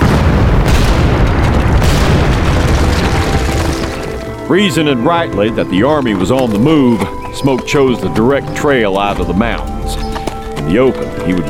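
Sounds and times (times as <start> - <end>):
explosion of blasting powder bundles lit with long fuses: 0.0 - 4.5
speech: 4.5 - 10.0, 10.6 - 11.4.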